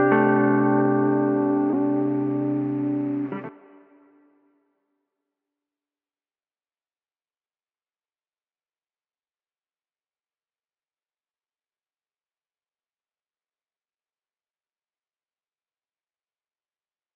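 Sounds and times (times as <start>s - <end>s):
wet electric guitar in E minor: 0.0s - 4.3s.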